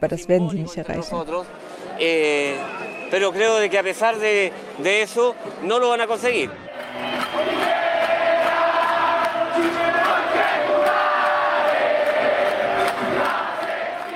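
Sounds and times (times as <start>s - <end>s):
speech: 0.0s - 7.1s
protest crowd chanting slogans: 6.7s - 14.1s.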